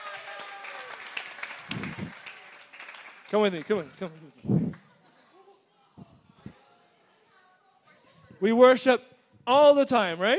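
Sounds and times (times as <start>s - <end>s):
audience clapping: 0.0s - 4.9s
speech: 3.3s - 4.7s, 8.4s - 10.3s.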